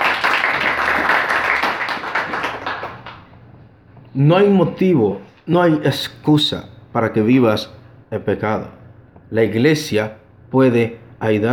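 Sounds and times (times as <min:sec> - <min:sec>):
audience clapping: 0:00.0 - 0:03.4
speech: 0:04.2 - 0:11.5.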